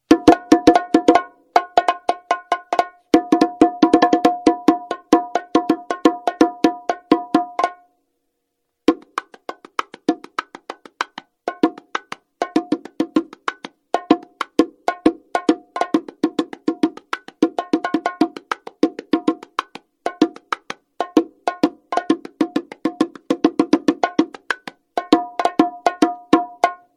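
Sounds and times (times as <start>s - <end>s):
Toca custom bongo playing a normal pattern: 0.0s - 8.0s, 8.8s - 26.9s.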